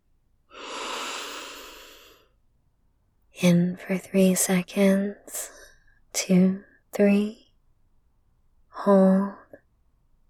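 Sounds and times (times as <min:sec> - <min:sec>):
slow deep breath during a relaxation exercise: 0:00.5 - 0:02.3
speech: 0:03.4 - 0:05.6, 0:06.2 - 0:07.4, 0:08.8 - 0:09.4.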